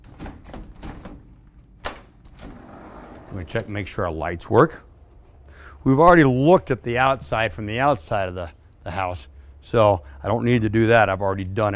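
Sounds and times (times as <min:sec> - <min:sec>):
back door opening and latching: 0:00.0 - 0:03.9
speech: 0:03.3 - 0:04.9, 0:05.8 - 0:11.7.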